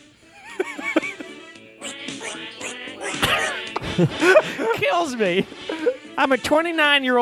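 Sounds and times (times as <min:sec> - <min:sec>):
laughter: 0:00.0 - 0:06.3
duck trumpet honking: 0:00.6 - 0:05.2
speech: 0:04.0 - 0:07.2.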